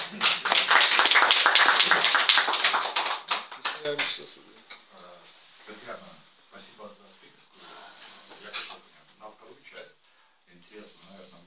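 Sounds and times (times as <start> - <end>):
audience applause after a talk: 0.0 - 4.2
speech: 3.9 - 4.4.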